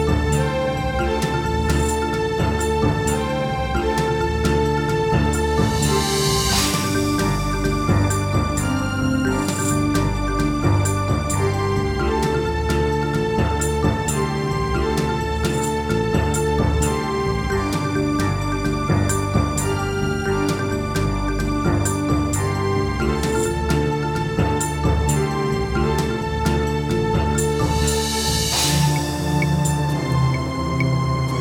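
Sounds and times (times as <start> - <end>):
Yamaha MU5 synthesizer tone: 0.1 - 31.3.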